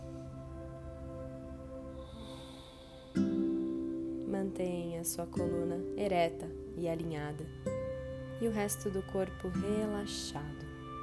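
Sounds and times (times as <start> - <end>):
deep breath: 1.9 - 4.1
speech: 4.4 - 7.8, 8.4 - 10.7.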